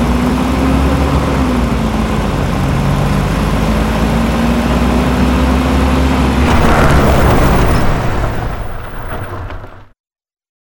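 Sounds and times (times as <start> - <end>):
Jeep ride: 0.0 - 10.0.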